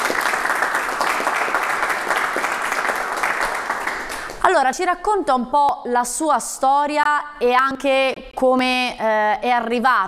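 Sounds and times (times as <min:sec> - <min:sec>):
studio audience applause: 0:00.0 - 0:04.5
speech: 0:04.6 - 0:10.0.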